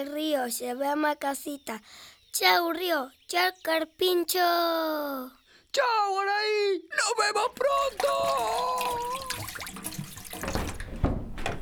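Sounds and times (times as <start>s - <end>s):
speech: 0.0s - 9.7s
water running from a tap: 7.5s - 11.6s.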